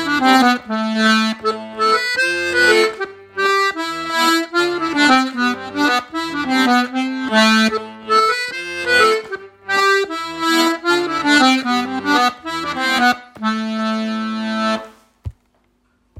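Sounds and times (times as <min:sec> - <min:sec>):
Scottish accordion music: 0:00.0 - 0:15.2.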